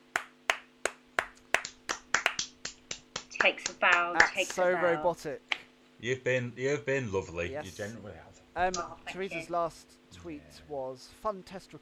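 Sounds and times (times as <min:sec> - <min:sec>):
round of applause: 0:00.0 - 0:04.7
faint steady hum: 0:00.0 - 0:11.8
speech: 0:03.4 - 0:11.8.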